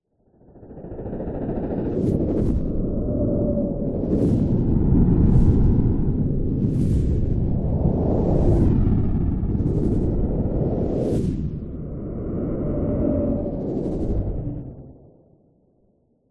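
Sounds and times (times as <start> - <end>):
science fiction spacecraft squadron flying past: 0.7 - 15.4.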